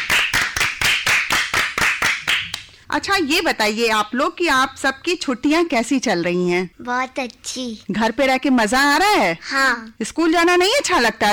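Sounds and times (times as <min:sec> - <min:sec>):
children clapping for a school group's program: 0:00.0 - 0:02.8
speech: 0:02.9 - 0:11.3.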